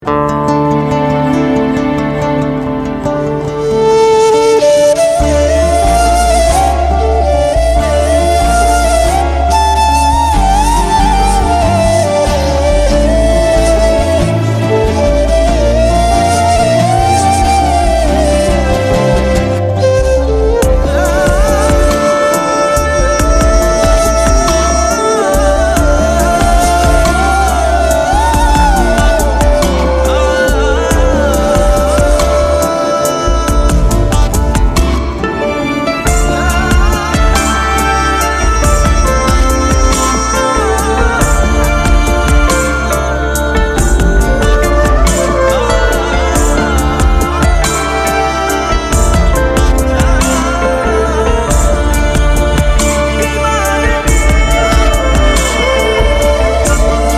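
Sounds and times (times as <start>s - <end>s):
instrumental music: 0.0s - 57.1s.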